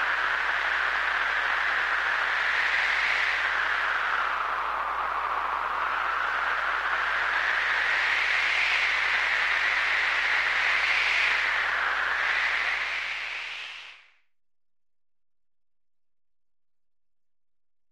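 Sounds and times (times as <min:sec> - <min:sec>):
blizzard: 0:00.0 - 0:14.2.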